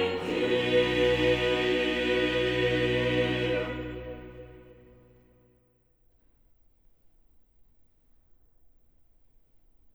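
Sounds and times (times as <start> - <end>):
choir singing: 0.0 - 5.3.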